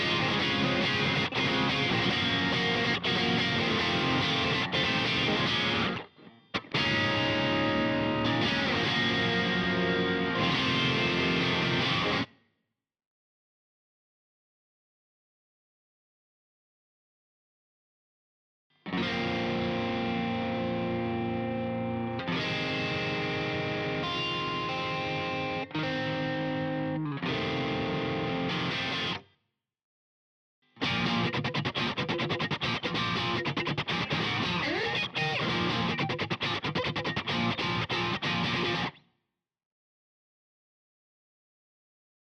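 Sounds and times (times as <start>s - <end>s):
electric guitar backing track stem: 0.0s - 12.3s, 18.9s - 29.2s, 30.8s - 39.0s.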